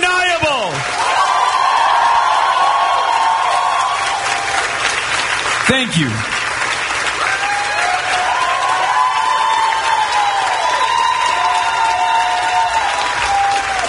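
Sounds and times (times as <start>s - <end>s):
college Democrats cheering: 0.3s - 13.8s
speech: 5.8s - 6.4s.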